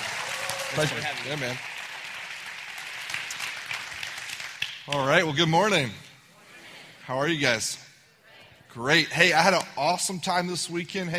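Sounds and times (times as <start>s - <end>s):
audience cheering and applauding to welcome a speaker: 0.0s - 5.0s
speech: 0.7s - 1.8s, 4.9s - 6.0s, 7.1s - 7.8s, 8.7s - 11.1s.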